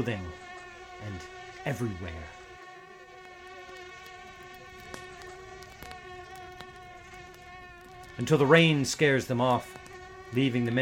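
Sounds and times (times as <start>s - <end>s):
speech: 0.0s - 0.4s, 1.0s - 2.4s, 8.2s - 10.8s
mosquitoes and black flies buzzing: 0.0s - 10.8s
faint ticks and taps: 3.1s - 10.8s.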